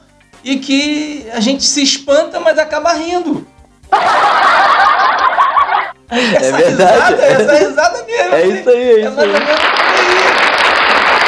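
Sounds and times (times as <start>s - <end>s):
speech: 0.4s - 5.1s, 6.1s - 9.7s
laughter: 3.9s - 8.6s, 9.2s - 11.2s
applause: 9.2s - 11.2s.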